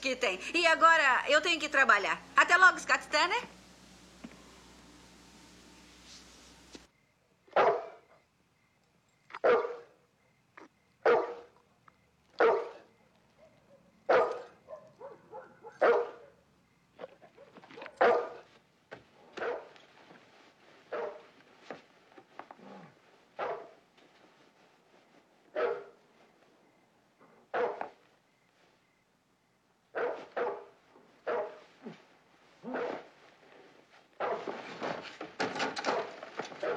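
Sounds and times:
speech: 0.0 - 3.6
dog barking: 7.5 - 8.2, 9.3 - 10.0, 11.0 - 11.6, 12.3 - 18.6, 19.2 - 19.8, 20.9 - 21.3, 23.4 - 23.8, 25.5 - 26.0, 27.3 - 28.0, 29.9 - 31.8, 32.6 - 33.1, 34.2 - 34.6, 35.8 - 36.7.

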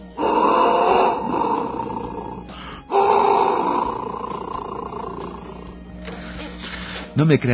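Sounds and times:
clay instrument imitating a caiman's call: 0.0 - 5.8.

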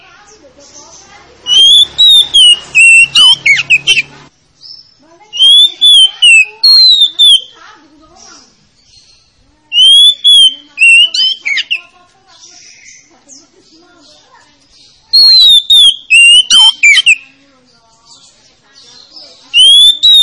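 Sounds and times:
Oriental magpie-robin song of bright whistled phrases: 0.0 - 7.6, 8.8 - 17.4, 18.0 - 20.2.

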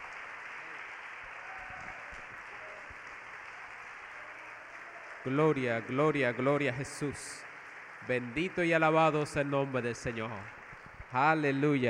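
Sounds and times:
church audience applauding in praise of God: 0.0 - 11.8
speech: 5.2 - 11.8.

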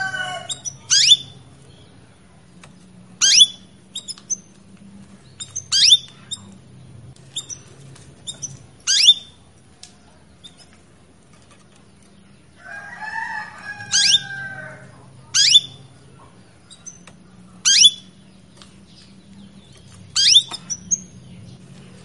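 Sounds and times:
canary calling and warbling: 0.0 - 1.9, 3.1 - 4.5, 5.3 - 6.6, 7.3 - 9.5, 12.6 - 18.4, 19.1 - 22.0.

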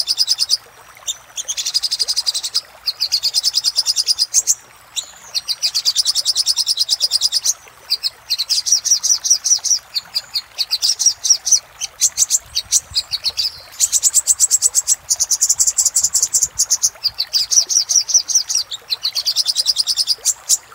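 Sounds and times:
little spiderhunter song: 0.0 - 20.7.

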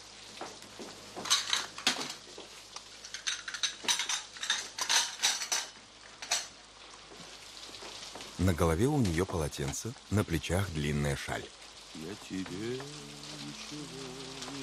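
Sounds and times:
dishes, cutlery and a samovar clattering as cleared from a dining table: 1.2 - 2.2, 3.0 - 6.6
speech: 8.4 - 14.6.

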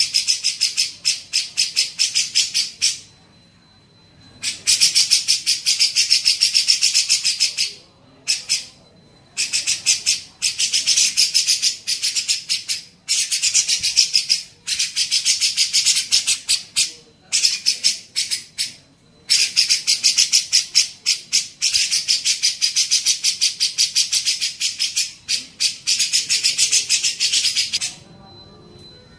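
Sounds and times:
grey-cheeked bulbul chattering: 0.0 - 29.1
thin steady tone: 0.0 - 29.1.

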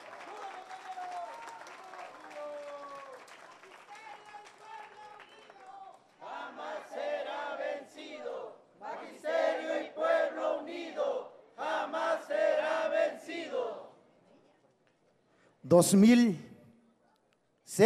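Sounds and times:
crowd applauding a Section 22 teachers' union speaker in Oaxaca: 0.0 - 6.8
crowd shouting and chanting: 6.2 - 14.1.

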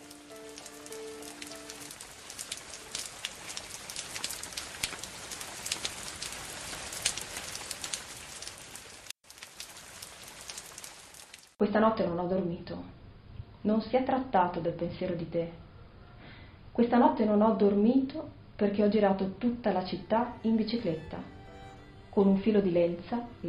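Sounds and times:
steady rain pattering: 0.0 - 11.6
speech: 11.7 - 13.0, 13.6 - 15.6, 16.8 - 21.3, 22.2 - 23.4.

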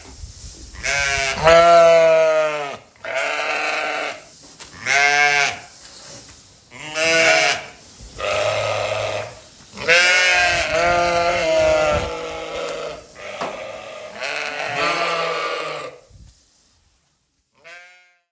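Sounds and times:
flock of sheep bleating: 0.8 - 4.2, 6.8 - 16.0, 17.6 - 18.3.

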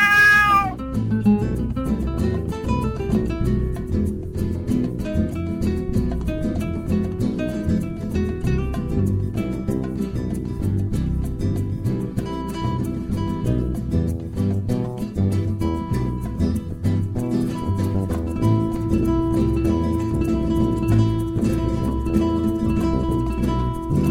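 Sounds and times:
cat meowing: 0.0 - 0.8
music with plucked notes and percussion: 0.8 - 24.0.

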